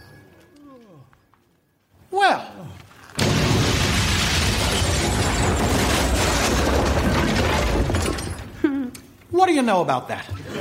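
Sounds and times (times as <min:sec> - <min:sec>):
house collapsing with a boom: 0:03.1 - 0:08.6
speech: 0:09.4 - 0:10.4.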